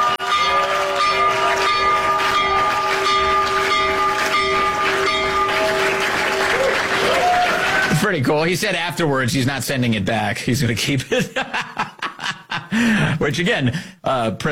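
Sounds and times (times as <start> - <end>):
New York Stock Exchange opening bell ringing: 0.0 - 7.0
speech: 8.1 - 11.6, 12.8 - 14.5
laughter: 11.0 - 13.1.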